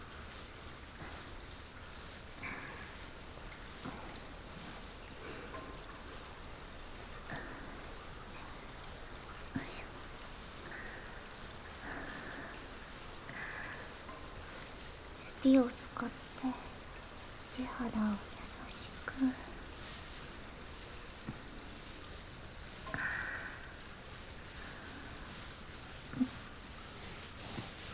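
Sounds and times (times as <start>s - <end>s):
hair being washed with water: 0.0s - 27.9s
speech: 15.4s - 16.6s, 17.8s - 18.3s.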